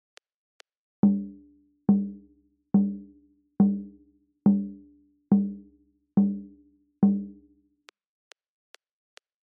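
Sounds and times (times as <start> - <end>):
kpanlogo drumming: 1.0 - 2.2, 2.8 - 3.0, 4.5 - 7.4.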